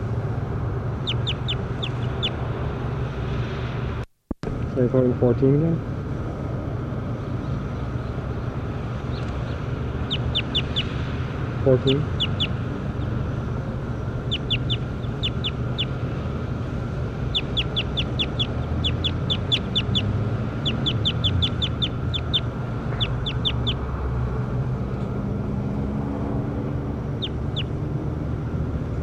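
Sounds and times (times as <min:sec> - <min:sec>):
low rumbling noise: 0:00.0 - 0:29.0
high-pitched bird chirps: 0:01.0 - 0:02.4, 0:09.1 - 0:11.0, 0:12.0 - 0:13.1, 0:14.2 - 0:16.0, 0:17.3 - 0:23.8, 0:27.2 - 0:27.7
speech: 0:04.8 - 0:05.9, 0:11.6 - 0:12.2.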